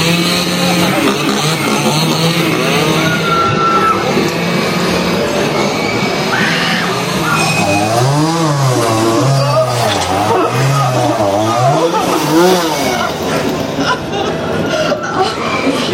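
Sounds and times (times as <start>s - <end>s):
chainsaws revving at Texas Chainsaw Massacre haunted house, Halloween Horror Nights: 0.0s - 14.9s
laughter: 0.5s - 15.9s.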